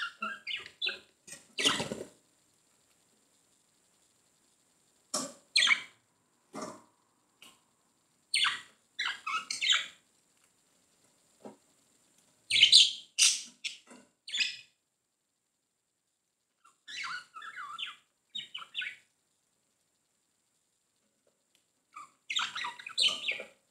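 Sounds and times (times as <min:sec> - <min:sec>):
budgerigar chirps and scratchy squawks: 0:00.0 - 0:01.0, 0:05.6 - 0:06.0, 0:08.3 - 0:10.0, 0:12.5 - 0:14.7, 0:16.6 - 0:19.0, 0:22.0 - 0:23.5.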